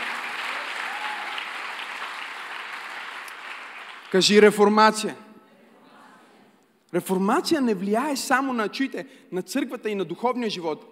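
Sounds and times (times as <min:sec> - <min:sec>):
audience applause: 0:00.0 - 0:04.2
speech: 0:04.1 - 0:05.2, 0:06.9 - 0:10.9.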